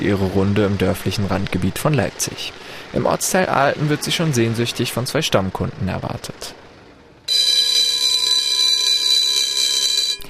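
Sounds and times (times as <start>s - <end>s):
speech: 0.0s - 6.6s
mobile shop van's bell ringing: 7.3s - 10.2s.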